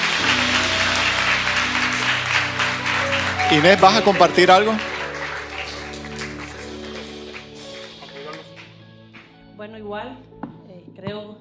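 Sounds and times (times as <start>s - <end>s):
weak audience applause: 0.0s - 8.8s
speech: 3.5s - 4.9s.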